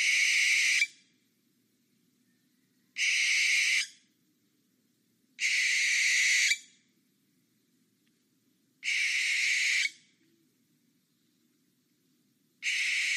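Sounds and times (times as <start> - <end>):
owl screeching with harsh hissing screeches: 0.0 - 1.0, 3.0 - 4.0, 5.4 - 6.8, 8.8 - 10.0, 12.6 - 13.1.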